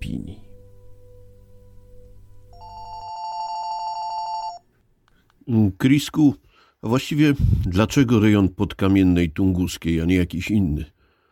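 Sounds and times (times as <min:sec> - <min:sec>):
telephone line hum: 0:00.5 - 0:04.7
telephone ringback tone on outgoing call: 0:02.5 - 0:04.6
speech: 0:05.5 - 0:11.0.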